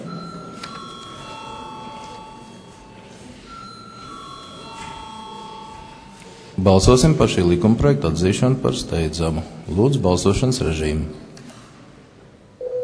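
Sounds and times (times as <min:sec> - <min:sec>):
parliamentary voting bell ringing: 0:00.0 - 0:07.3
murmur of voices in the chamber: 0:00.0 - 0:12.6
speech: 0:06.6 - 0:11.3.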